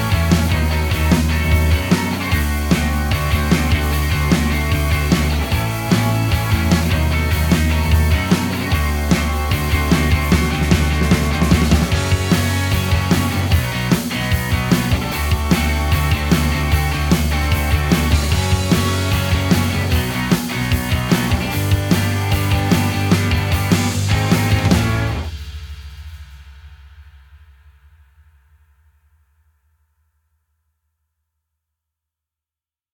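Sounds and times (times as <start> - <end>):
Britpop music: 0.0 - 25.3.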